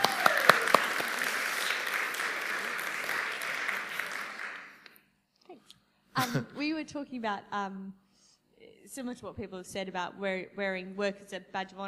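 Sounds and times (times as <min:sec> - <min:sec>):
audience applause: 0:00.0 - 0:04.8
speech: 0:06.2 - 0:08.0, 0:08.9 - 0:11.8.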